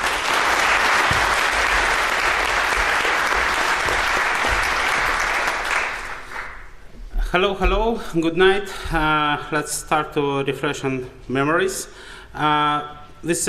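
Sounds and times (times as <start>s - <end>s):
audience applause: 0.0s - 6.7s
speech: 7.3s - 13.4s.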